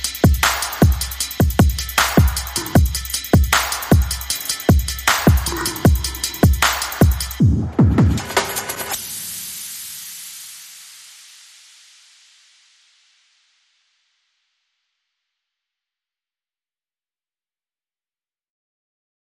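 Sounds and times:
drums: 0.0s - 11.2s.

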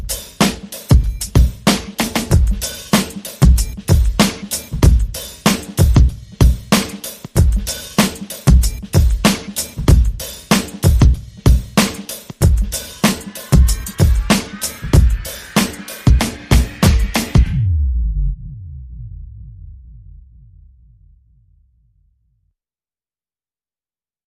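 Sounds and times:
drums: 0.0s - 17.8s.

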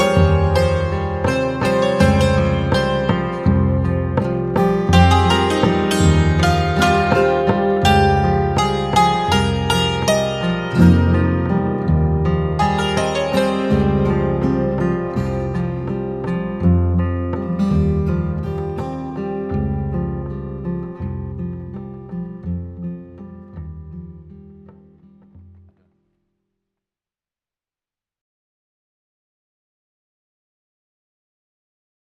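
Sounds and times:
slow maracatu percussion: 0.0s - 21.8s.

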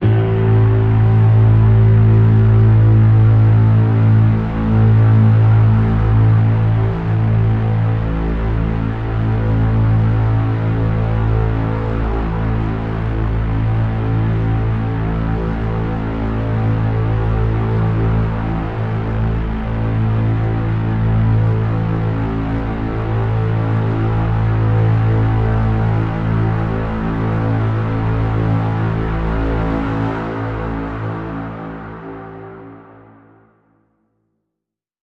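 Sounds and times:
buzzing drone in A: 0.0s - 33.2s.

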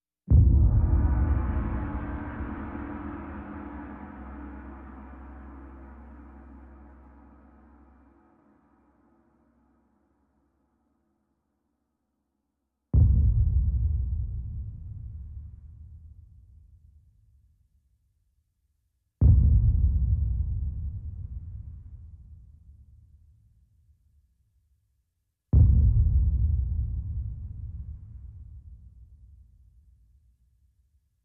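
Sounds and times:
percussion: 0.3s - 10.4s, 13.0s - 17.0s, 19.2s - 23.3s, 25.6s - 30.1s.

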